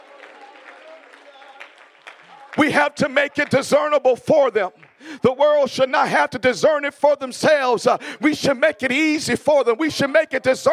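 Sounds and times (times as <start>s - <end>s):
audience clapping: 0.0s - 5.2s
speech: 2.6s - 10.7s.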